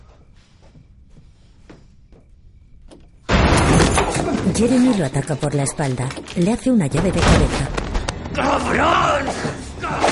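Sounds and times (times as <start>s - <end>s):
front door slamming shut: 3.3s - 4.4s
speech: 4.6s - 7.8s, 8.4s - 10.0s.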